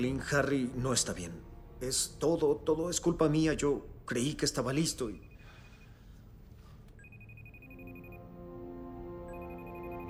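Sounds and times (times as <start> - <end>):
speech: 0.0 - 5.3
telephone ringing with a high electronic trill: 7.0 - 8.5, 9.3 - 10.0.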